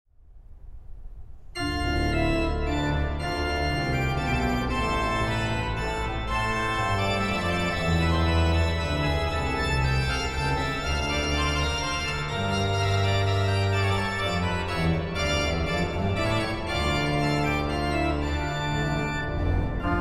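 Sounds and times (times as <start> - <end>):
organ: 1.6 - 19.9.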